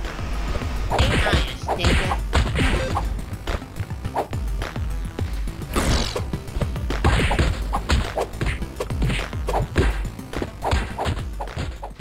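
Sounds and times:
driving video game music: 0.0s - 11.9s
beat 'em up video game fighting sounds: 0.9s - 3.1s, 5.6s - 11.9s.

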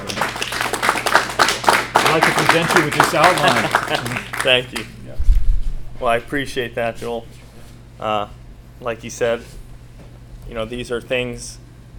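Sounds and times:
audience applause: 0.0s - 4.9s
laughter: 2.1s - 4.6s
speech: 2.1s - 5.0s, 6.0s - 7.4s, 8.0s - 9.6s, 10.5s - 11.6s.

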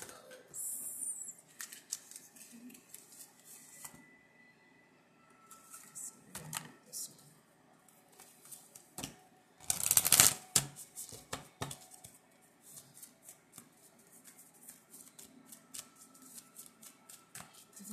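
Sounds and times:
deck of compliment cards shuffling: 1.5s - 4.0s, 8.2s - 17.8s.

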